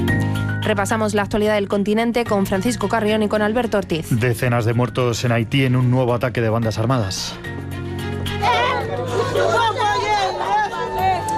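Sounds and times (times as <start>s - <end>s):
speech: 0.6s - 7.6s
neighbors screaming in desperation after attack: 8.4s - 11.3s.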